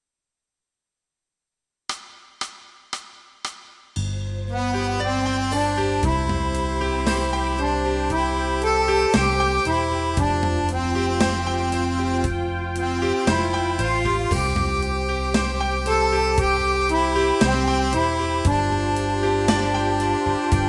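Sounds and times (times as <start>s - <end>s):
accordion playing tutti: 4.3s - 20.6s.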